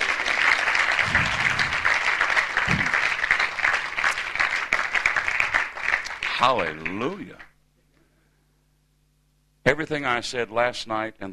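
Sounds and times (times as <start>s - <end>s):
audience applause: 0.0s - 7.2s
speech: 6.4s - 7.5s, 9.7s - 11.3s.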